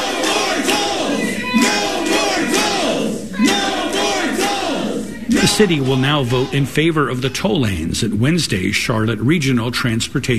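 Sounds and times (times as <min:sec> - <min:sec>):
crowd shouting in council chamber: 0:00.0 - 0:07.2
speech: 0:05.6 - 0:10.3.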